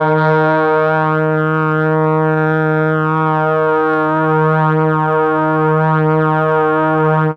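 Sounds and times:
Mellotron brass D sharp 2 note: 0:00.0 - 0:07.3.

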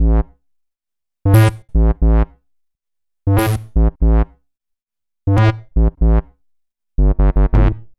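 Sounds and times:
EDM bass: 0:00.0 - 0:00.3, 0:01.4 - 0:02.3, 0:03.3 - 0:04.2, 0:05.3 - 0:06.2, 0:07.0 - 0:07.9.

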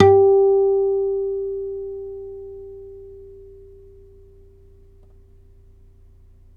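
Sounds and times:
nylon-string guitar harmonics in G: 0:00.0 - 0:05.0.

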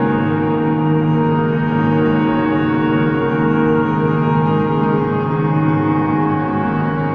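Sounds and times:
blurred piano: 0:00.0 - 0:07.1.

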